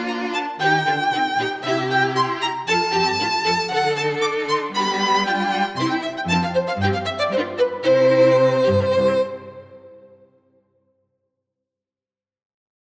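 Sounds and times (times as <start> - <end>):
string quartet: 0.0 - 10.2.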